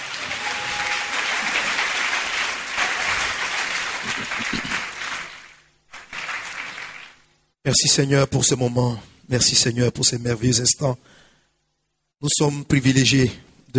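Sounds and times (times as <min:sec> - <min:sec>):
church congregation clapping: 0:00.0 - 0:07.3
speech: 0:07.7 - 0:11.3, 0:12.2 - 0:13.7.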